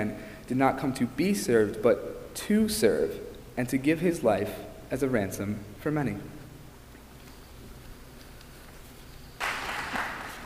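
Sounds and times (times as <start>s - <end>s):
speech: 0.0s - 6.4s
audience applause: 9.4s - 10.4s.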